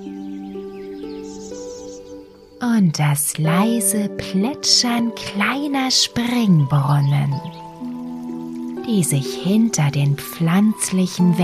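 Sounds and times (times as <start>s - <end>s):
birds chirping in hedges: 0.0s - 11.4s
speech: 2.6s - 7.6s, 8.9s - 11.4s.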